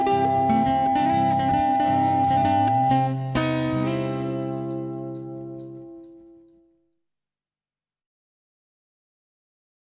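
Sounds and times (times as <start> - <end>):
flute player accompaniment: 0.0 - 6.6.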